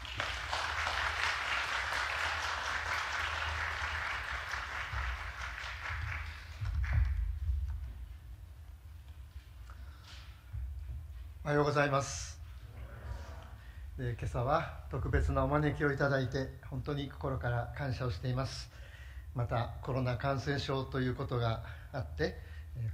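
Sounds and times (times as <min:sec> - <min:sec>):
audience applause: 0:00.0 - 0:07.7
speech: 0:11.5 - 0:12.3, 0:14.0 - 0:18.8, 0:19.4 - 0:22.9.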